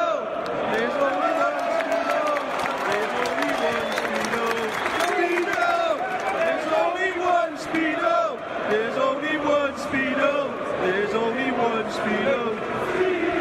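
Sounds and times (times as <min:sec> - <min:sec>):
shouts: 0:00.0 - 0:07.2
football crowd singing a chant: 0:00.0 - 0:13.3
scattered claps: 0:00.4 - 0:06.5.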